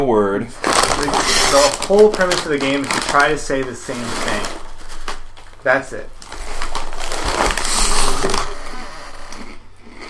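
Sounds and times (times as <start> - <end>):
speech: 0.0 - 4.6, 5.6 - 6.2
person chewing Chex Mix: 6.2 - 10.0.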